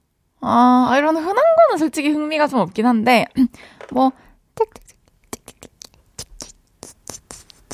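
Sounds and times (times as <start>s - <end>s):
speech: 0.4s - 4.8s
voice imitating mouse squeaking and scratching: 4.6s - 7.7s.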